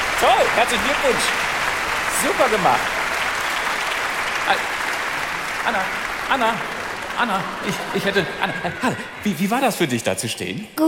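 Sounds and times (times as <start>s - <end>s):
audience applause: 0.0s - 10.3s
speech: 0.2s - 1.5s, 2.2s - 3.0s, 4.5s - 4.8s, 5.6s - 10.8s
laughter: 5.7s - 10.0s.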